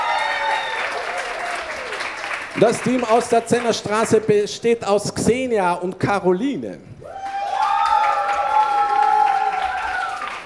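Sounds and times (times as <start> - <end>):
audience applause at a team competition: 0.0 - 4.3, 7.1 - 10.4
speech: 2.6 - 7.2.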